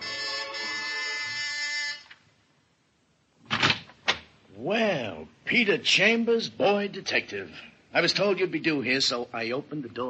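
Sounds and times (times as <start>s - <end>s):
door buzzer ringing: 0.0s - 2.1s
speech: 4.6s - 10.0s.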